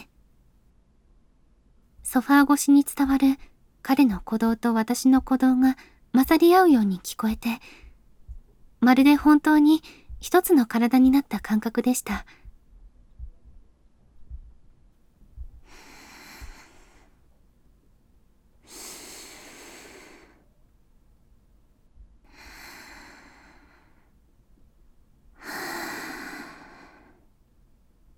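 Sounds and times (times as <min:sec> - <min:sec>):
speech: 0:02.1 - 0:07.8, 0:08.8 - 0:12.4
quiet deep breathing: 0:05.7 - 0:06.1, 0:07.6 - 0:08.8, 0:09.8 - 0:10.2, 0:12.2 - 0:17.5, 0:18.6 - 0:20.8, 0:21.9 - 0:24.4, 0:25.2 - 0:27.5.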